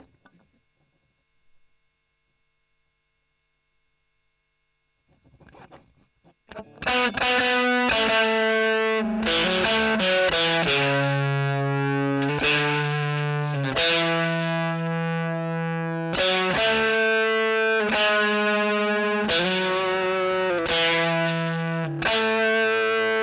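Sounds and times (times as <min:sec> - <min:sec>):
overdriven electric guitar: 0:04.6 - 0:23.2.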